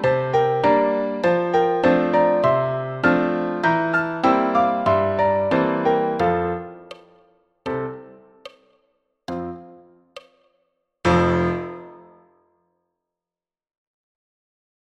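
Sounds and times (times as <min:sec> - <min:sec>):
music at 100 bpm: 0:00.0 - 0:13.0.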